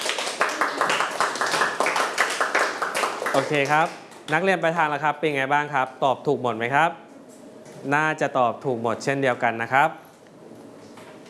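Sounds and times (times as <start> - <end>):
people clapping: 0.0 - 4.4
speech: 3.4 - 7.0, 7.8 - 10.0.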